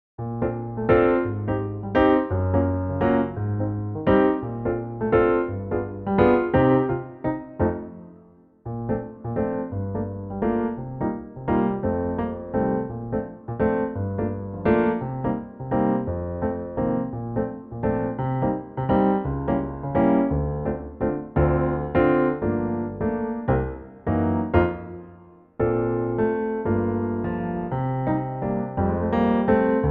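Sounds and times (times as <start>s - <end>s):
piano in B flat: 0.2s - 29.8s.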